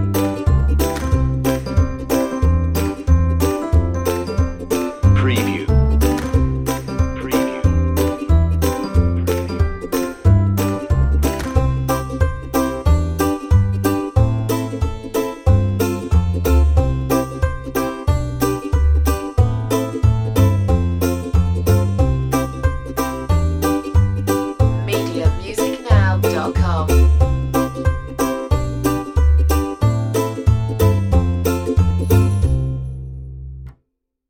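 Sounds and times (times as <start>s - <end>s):
happy reggae piano music: 0.0s - 33.4s.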